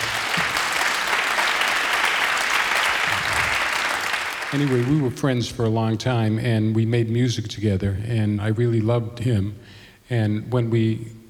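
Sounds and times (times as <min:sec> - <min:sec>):
crowd clapping: 0:00.0 - 0:05.2
speech: 0:04.5 - 0:11.2.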